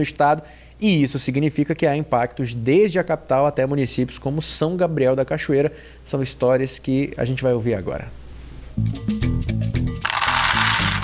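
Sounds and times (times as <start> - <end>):
speech: 0.0 - 8.2, 8.8 - 9.5
açaí seeds rattling in craft bracelets: 10.0 - 11.0.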